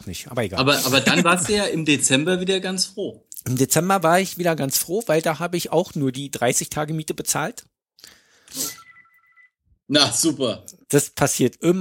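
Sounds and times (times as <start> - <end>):
speech: 0.0 - 8.8, 9.9 - 11.8
phone ringing: 8.6 - 9.6.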